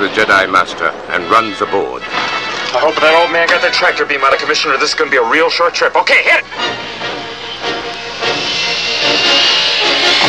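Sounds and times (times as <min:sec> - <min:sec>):
speech: 0:00.0 - 0:07.0
spaceship engine accelerating: 0:04.6 - 0:10.2.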